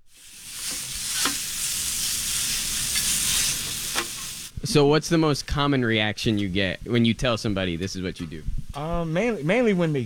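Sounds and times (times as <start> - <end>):
hibachi food sizzling on a hot grill: 0.0 - 4.6
speech: 4.7 - 10.0.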